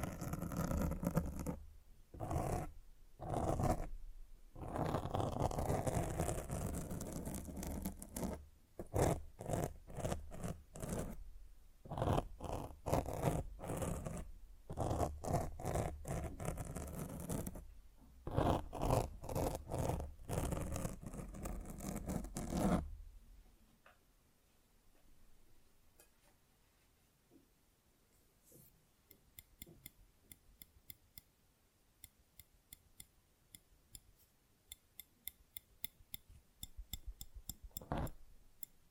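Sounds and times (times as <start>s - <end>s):
scratching and rubbing on a microphone: 0.0s - 1.6s, 2.2s - 3.9s, 4.6s - 11.2s, 11.9s - 17.6s, 18.3s - 22.9s.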